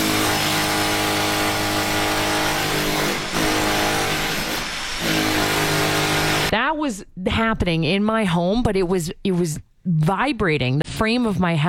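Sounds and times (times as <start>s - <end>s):
power drill reinforcing wooden bed slats: 0.0s - 6.5s
speech: 6.5s - 11.6s.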